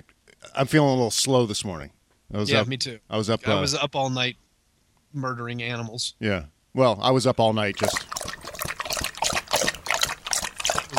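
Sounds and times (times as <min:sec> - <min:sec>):
speech: 0:00.6 - 0:04.4, 0:05.1 - 0:08.1
gulping or slurping a drink: 0:07.7 - 0:10.9.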